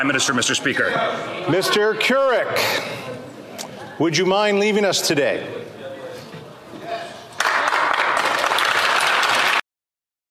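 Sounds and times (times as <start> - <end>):
speech: 0.0 - 3.2, 4.0 - 5.7
parliament members clapping: 7.3 - 9.6.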